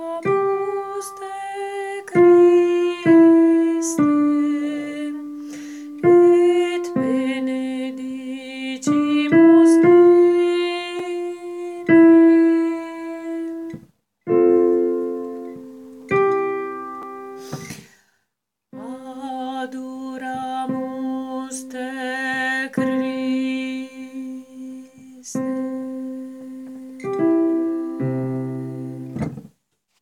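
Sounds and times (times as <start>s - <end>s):
alto voice singing a motet: 0.0s - 14.5s, 18.7s - 29.0s.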